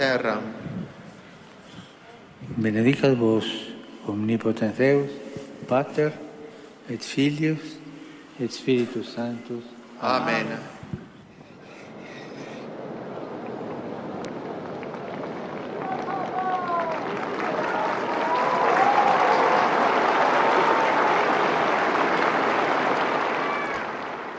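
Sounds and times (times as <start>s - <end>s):
speech: 0.0s - 0.7s, 2.5s - 6.2s, 6.9s - 7.8s, 8.4s - 10.7s
pilgrims applauding in St Peter's Square: 11.7s - 24.3s.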